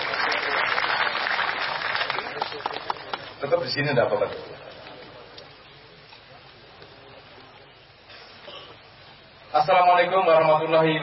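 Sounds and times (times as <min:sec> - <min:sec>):
audience clapping for a district military commander at a gathering: 0:00.0 - 0:03.7
speech: 0:03.5 - 0:04.5, 0:09.6 - 0:11.0.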